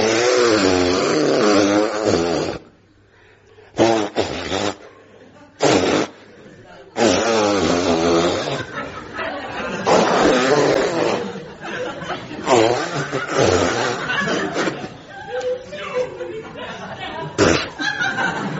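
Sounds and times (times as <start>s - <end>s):
nose blowing: 0.0s - 2.8s, 3.7s - 5.0s, 5.6s - 6.3s, 7.0s - 8.9s, 9.7s - 11.7s, 12.4s - 14.9s, 17.4s - 17.8s
laughter: 4.5s - 7.1s, 8.1s - 18.5s.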